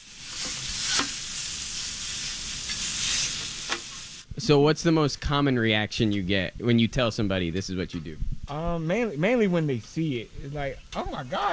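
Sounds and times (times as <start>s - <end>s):
food sizzling on a hot hibachi grill: 0.0s - 4.3s
spatula scraping hibachi grill: 0.3s - 1.2s, 2.1s - 4.1s
speech: 4.4s - 11.5s.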